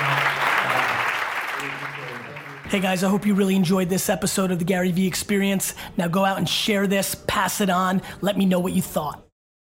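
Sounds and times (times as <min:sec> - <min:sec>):
audience applause at a keynote at CUNY City College: 0:00.0 - 0:02.8
speech: 0:02.7 - 0:09.3.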